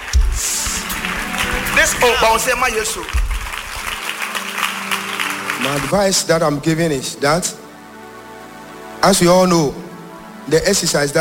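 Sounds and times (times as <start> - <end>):
people clapping: 0.0 - 6.4
speech: 1.9 - 3.3, 5.6 - 7.6, 9.0 - 11.2.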